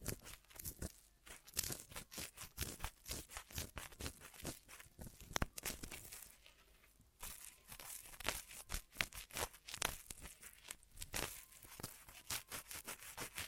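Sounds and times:
ear massage crinkling and rubbing: 0.0 - 13.4.

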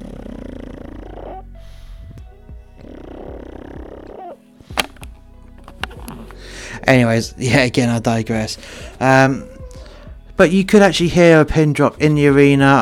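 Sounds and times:
dog snorting: 0.0 - 4.4
sharp clicks: 4.8 - 6.1
speech: 6.8 - 9.5, 10.4 - 12.8.

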